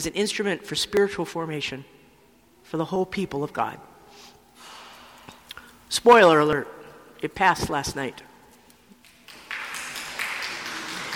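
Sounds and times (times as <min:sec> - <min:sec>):
speech: 0:00.0 - 0:02.0, 0:02.7 - 0:03.9, 0:05.9 - 0:08.3
audience clapping: 0:08.9 - 0:11.1.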